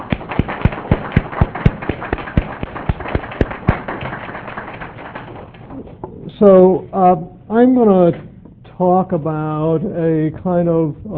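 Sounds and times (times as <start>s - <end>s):
audience clapping: 0.0s - 5.8s
speech: 6.4s - 11.1s.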